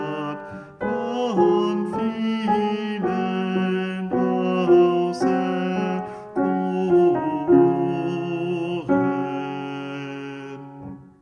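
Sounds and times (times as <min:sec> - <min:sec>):
alto voice singing: 0:00.0 - 0:11.2.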